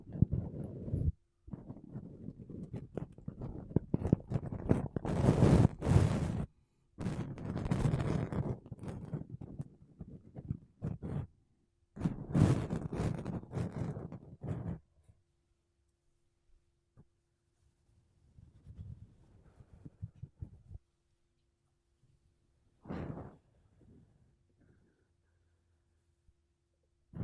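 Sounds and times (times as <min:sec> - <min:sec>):
makeup brushes and a sponge rubbed against a microphone: 0:00.0 - 0:11.3, 0:12.0 - 0:14.9, 0:18.3 - 0:20.8, 0:22.8 - 0:24.1.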